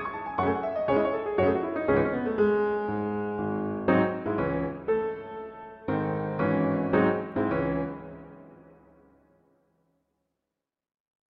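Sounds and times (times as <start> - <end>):
classical piece in C sharp minor allegro molto: 0.0 - 8.8.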